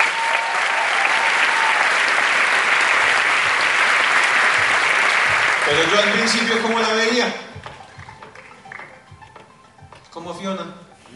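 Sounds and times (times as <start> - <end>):
loud audience applause: 0.0 - 7.2
speech: 5.7 - 7.4, 10.2 - 10.8.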